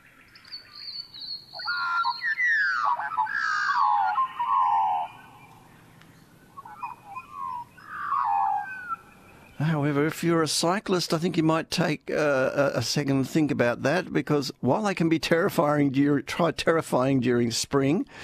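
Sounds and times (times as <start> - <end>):
magpie calling: 0.0 - 9.6
speech: 9.6 - 18.2.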